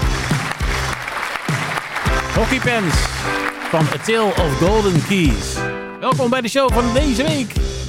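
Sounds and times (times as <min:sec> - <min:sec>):
audience applause: 0:00.0 - 0:05.6
speech: 0:02.4 - 0:07.7.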